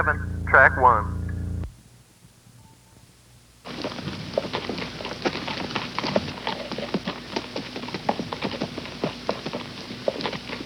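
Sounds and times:
speech: 0.0 - 1.2
faint tone: 0.0 - 1.7
horse hoofbeats: 0.0 - 1.7, 3.7 - 10.6.

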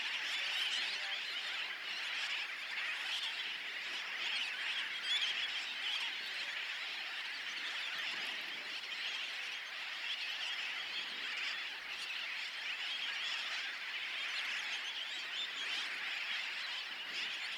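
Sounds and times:
birds crying in massed chorus at Bush Key in the Dry Tortugas: 0.0 - 17.5.

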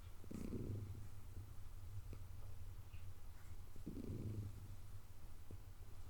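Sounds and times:
cat purring: 0.2 - 6.0.

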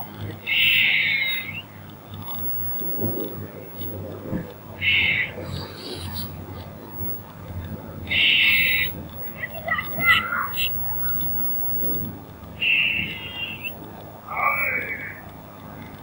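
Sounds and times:
squirrel uttering a short harsh buzzing chatter: 0.4 - 1.6, 4.8 - 7.2, 8.0 - 15.3.

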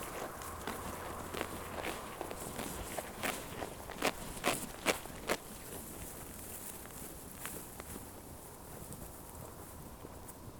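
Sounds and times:
sheep chewing with crunching bites: 0.0 - 8.0
faint low hum: 0.0 - 10.5.

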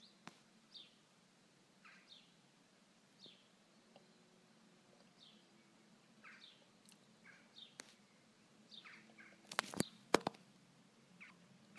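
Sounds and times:
bird giving soft descending chirps: 0.0 - 11.7.

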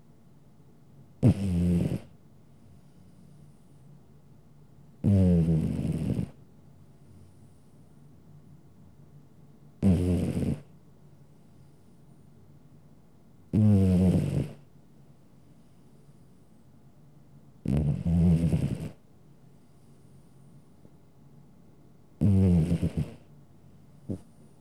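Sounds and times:
domestic cat snoring: 1.2 - 2.1, 5.0 - 6.4, 9.8 - 10.7, 13.5 - 14.6, 17.6 - 19.0, 22.2 - 23.3.

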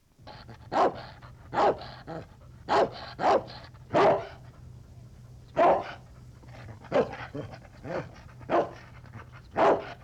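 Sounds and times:
large dog barking: 0.7 - 1.9, 2.7 - 4.3, 5.6 - 6.0, 7.9 - 8.8, 9.6 - 10.0.

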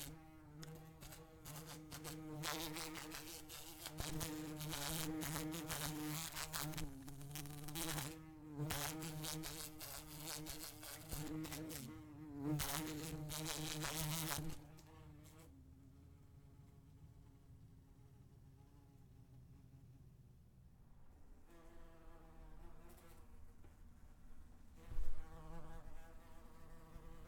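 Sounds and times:
wasp buzzing: 0.0 - 15.5, 24.8 - 27.2.

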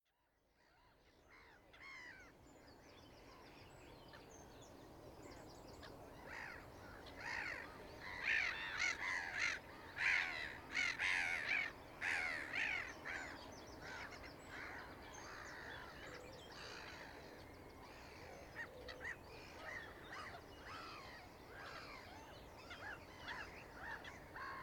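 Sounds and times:
several gulls crying and squawking on the Isles of Scilly: 5.8 - 24.6.

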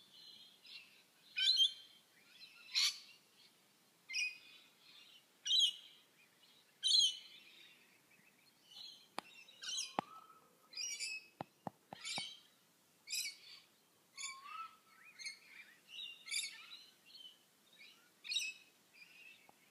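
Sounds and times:
birds twittering: 4.1 - 19.6.

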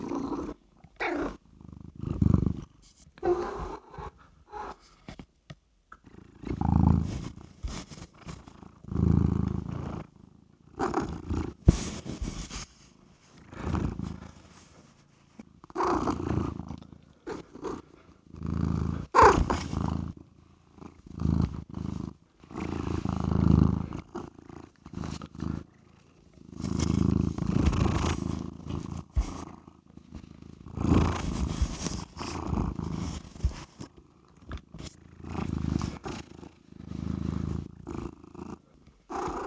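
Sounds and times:
cat purring: 0.0 - 5.2, 5.9 - 39.4
faint rustling: 6.8 - 8.9, 11.1 - 18.2, 20.8 - 38.9.

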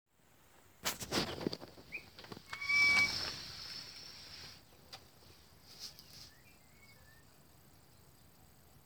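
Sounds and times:
bird chirping: 1.8 - 3.3, 5.9 - 8.4.

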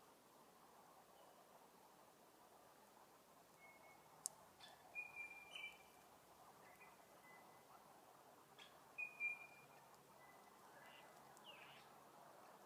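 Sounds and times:
quiet hiss: 0.0 - 12.6
faint bird chirps: 3.5 - 7.9, 8.5 - 12.0.

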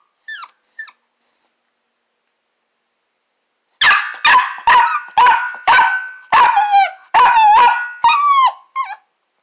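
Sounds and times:
small dog barking with a ringing echo: 3.8 - 8.7.

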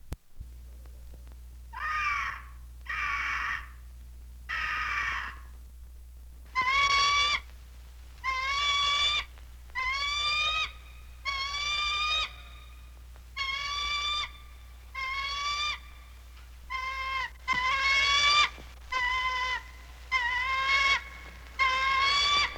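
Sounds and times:
eagle crying: 1.7 - 3.8, 4.5 - 5.6, 6.5 - 7.5, 8.2 - 22.5.

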